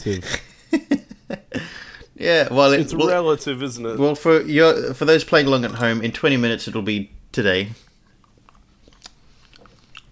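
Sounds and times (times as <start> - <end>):
speech: 0.0 - 0.8, 2.2 - 7.8
person chewing chocolate coins: 7.8 - 10.0.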